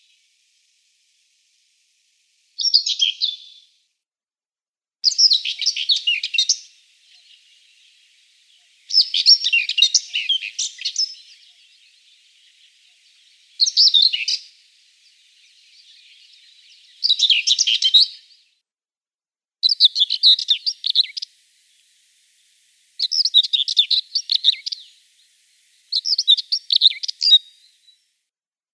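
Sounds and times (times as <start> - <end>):
common whitethroat song: 2.6 - 3.6, 5.0 - 18.4, 19.6 - 21.3, 23.0 - 25.1, 25.9 - 27.7.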